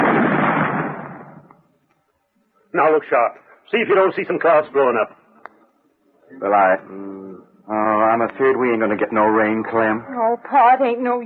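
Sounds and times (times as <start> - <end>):
cannon firing: 0.0 - 1.6
speech: 2.8 - 5.2, 6.3 - 11.2.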